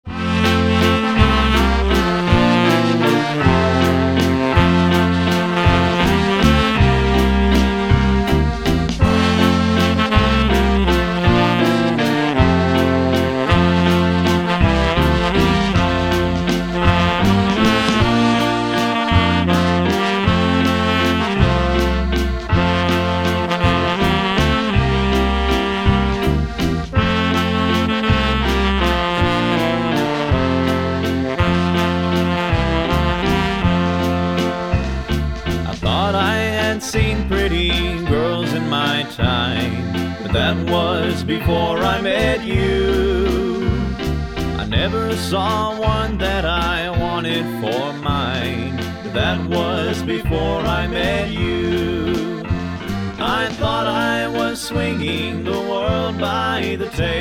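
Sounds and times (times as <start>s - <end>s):
waltz music: 0.0s - 57.1s.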